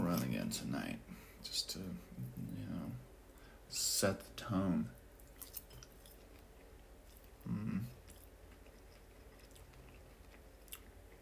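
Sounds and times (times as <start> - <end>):
speech: 0.2 - 3.1, 3.7 - 5.0, 7.4 - 8.0
chewing chicken: 5.2 - 11.1.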